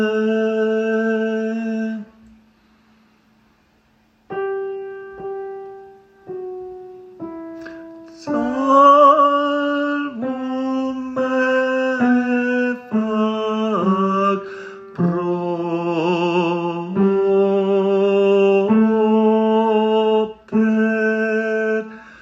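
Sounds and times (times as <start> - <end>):
tenor singing: 0.0 - 2.4, 8.0 - 22.2.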